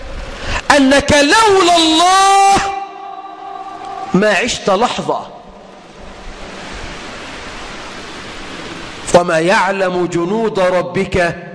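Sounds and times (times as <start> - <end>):
speech: 0.8 - 2.6, 4.1 - 5.4, 9.2 - 11.5
rain falling: 3.3 - 9.4.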